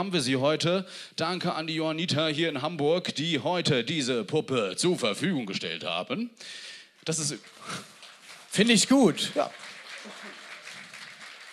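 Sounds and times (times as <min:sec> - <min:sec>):
speech: 0:00.0 - 0:07.9, 0:08.5 - 0:10.2
live audience applause: 0:07.2 - 0:11.5.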